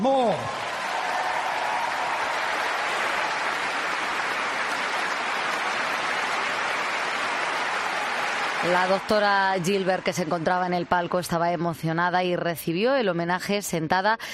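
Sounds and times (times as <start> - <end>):
speech: 0.0 - 0.6, 8.6 - 14.3
large stadium crowd applauding: 0.0 - 11.2.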